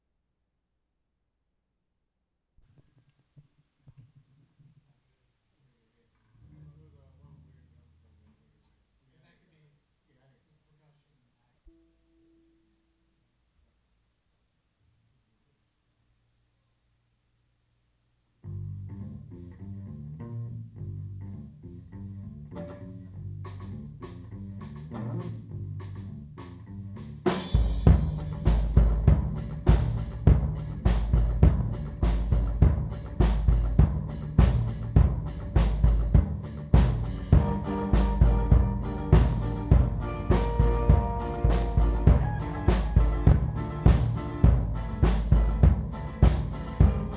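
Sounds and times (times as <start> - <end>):
kick drum: 27.6 - 47.1.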